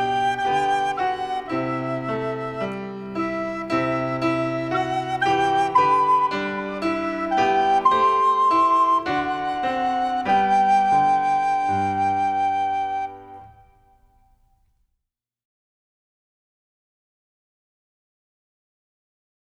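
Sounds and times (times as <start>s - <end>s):
solo music: 0.0s - 14.4s.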